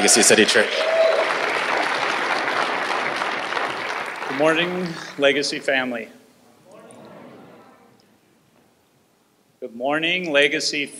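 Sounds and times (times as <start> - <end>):
speech: 0.0 - 1.1, 4.4 - 6.2, 9.8 - 10.9
audience applause: 0.0 - 5.2, 6.7 - 8.0.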